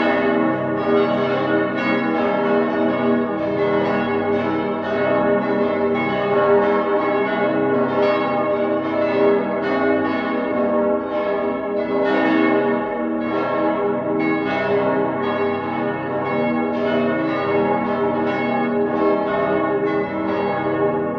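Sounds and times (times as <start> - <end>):
cathedral bells ringing in partial peal on G sharp: 0.0 - 21.1.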